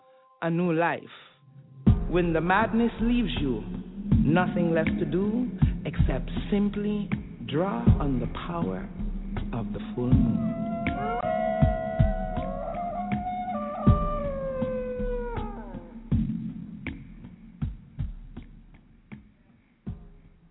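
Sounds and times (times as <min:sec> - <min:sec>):
speech: 0:00.4 - 0:01.3, 0:02.1 - 0:11.2
wolves howling: 0:10.1 - 0:16.1.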